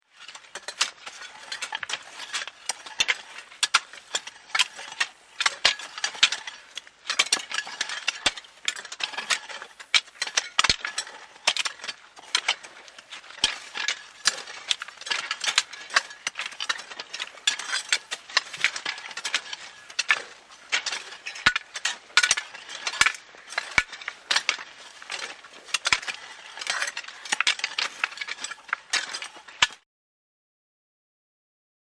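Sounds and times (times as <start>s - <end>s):
field workers hoeing ground with hoes: 0.1s - 29.8s.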